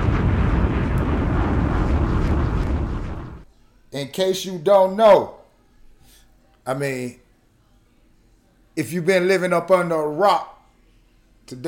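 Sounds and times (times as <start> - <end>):
bomb explosion sound effect: 0.0 - 3.5
speech: 4.0 - 5.4, 6.6 - 7.2, 8.8 - 10.5, 11.5 - 11.6.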